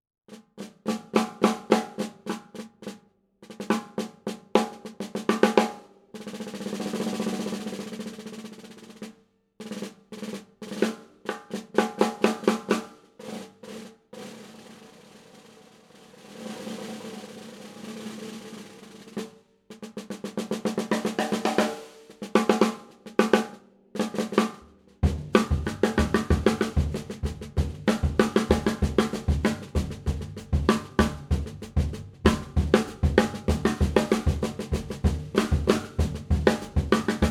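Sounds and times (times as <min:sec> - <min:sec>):
1960s Slingerland 5x14 brass shell snare drum: 0:00.3 - 0:37.2.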